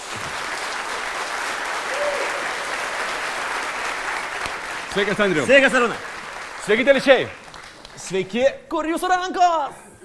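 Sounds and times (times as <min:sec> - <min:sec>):
audience applause welcoming a guest onto a live talk show in Telšiai: 0:00.0 - 0:08.2
speech: 0:05.0 - 0:07.4, 0:08.0 - 0:09.9.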